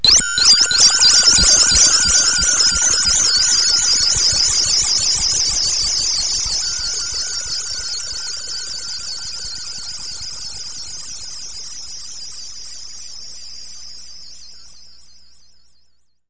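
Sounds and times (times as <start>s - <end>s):
space radio sound: 0.0s - 11.2s.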